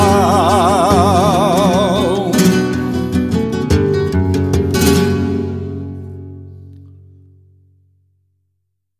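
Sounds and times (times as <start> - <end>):
fandango music: 0.0 - 6.4.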